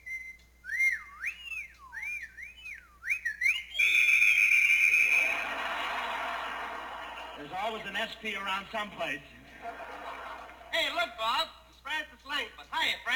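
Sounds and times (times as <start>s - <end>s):
person whistling at a passing woman: 0.0s - 5.4s
laughter: 5.1s - 11.0s
speech: 7.7s - 9.8s, 11.0s - 11.6s, 12.2s - 13.1s.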